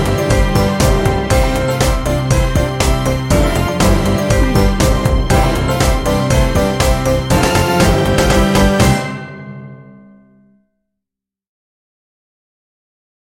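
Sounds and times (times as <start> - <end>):
Christmas carol: 0.0 - 9.6.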